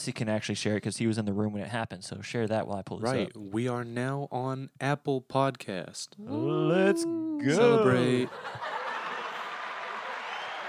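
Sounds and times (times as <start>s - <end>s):
speech: 0.0s - 8.7s
laughter: 6.3s - 10.6s
small applause sound clip: 9.0s - 10.6s.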